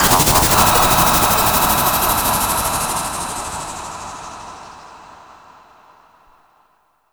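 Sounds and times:
space sound effects: 0.0 - 4.8.

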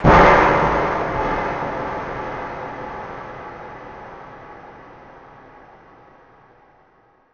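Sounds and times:
big clank: 0.0 - 4.6.

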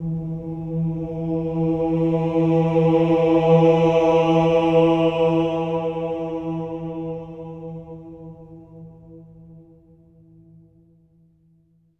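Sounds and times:
choir of voices: 0.0 - 9.9.

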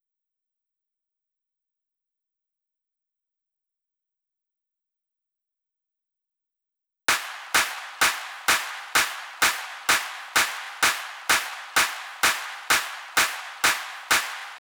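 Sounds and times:
128BPM drum loop: 7.1 - 14.6
crowd clapping: 7.1 - 14.6.

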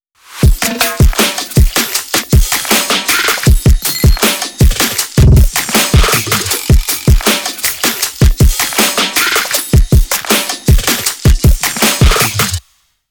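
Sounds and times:
drum tracks: 0.2 - 12.8.

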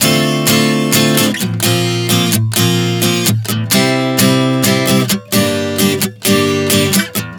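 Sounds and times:
acoustic guitar chord progressions: 0.0 - 7.3.

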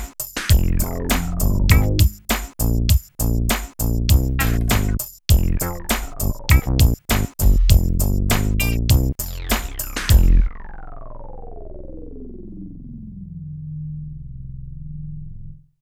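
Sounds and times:
loop: 0.5 - 3.4, 4.1 - 13.6.

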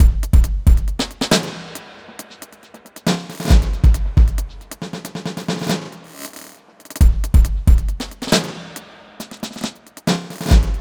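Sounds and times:
drum and bass drum loop: 0.0 - 10.7.

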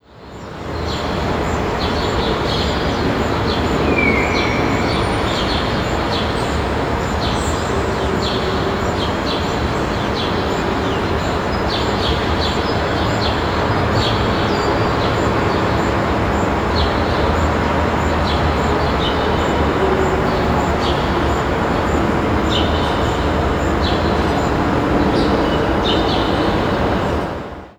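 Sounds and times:
New York City big square town ambience: 0.0 - 27.7.

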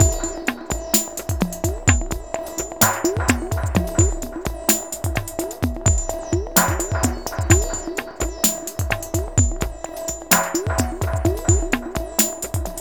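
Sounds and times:
ethnotronic processed percussion: 0.0 - 12.7.

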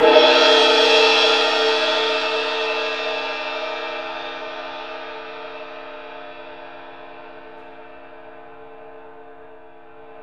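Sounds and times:
orchestral cymbal crash: 0.0 - 6.1.

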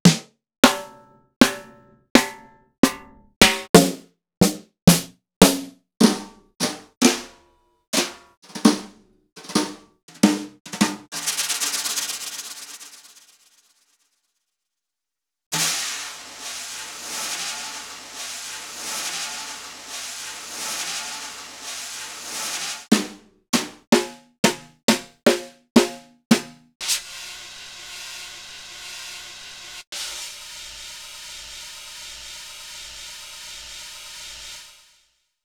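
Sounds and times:
Roland BK-5 snare drum hits: 0.0 - 7.4, 8.0 - 11.1, 22.9 - 27.0.

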